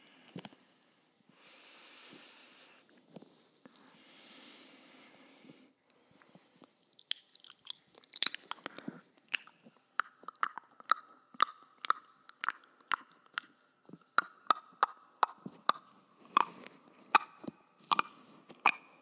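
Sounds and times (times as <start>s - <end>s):
breathy wet mouth sounds: 6.2s - 19.0s.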